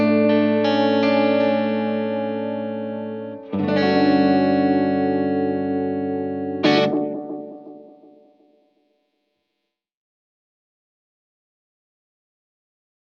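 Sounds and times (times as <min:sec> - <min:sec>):
bright guitar tone with warm heavily modulated oil can echoes: 0:00.0 - 0:08.5.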